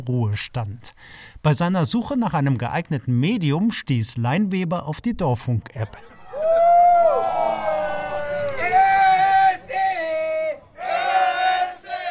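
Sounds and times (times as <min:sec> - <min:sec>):
speech: 0:00.0 - 0:06.1
football fans cheering and chanting: 0:06.0 - 0:12.0.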